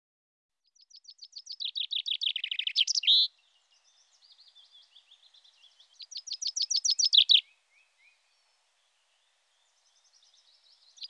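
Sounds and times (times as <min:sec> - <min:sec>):
common chaffinch song: 0:00.6 - 0:11.0.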